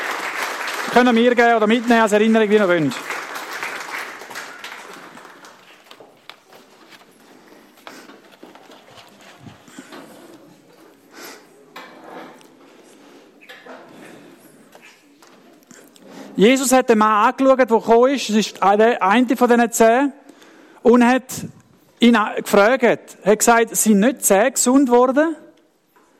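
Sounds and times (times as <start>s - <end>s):
audience applause for helpers: 0.0s - 6.0s
speech: 0.9s - 3.1s, 16.4s - 20.2s, 20.8s - 25.4s.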